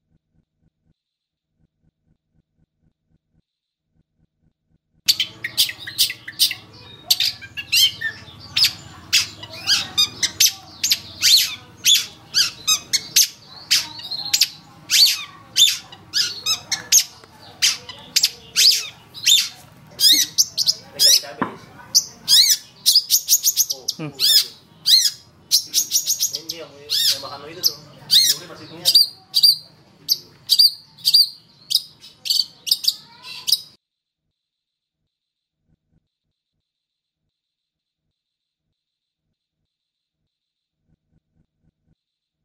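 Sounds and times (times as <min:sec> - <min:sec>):
long-tailed shrike singing: 0:05.1 - 0:33.8.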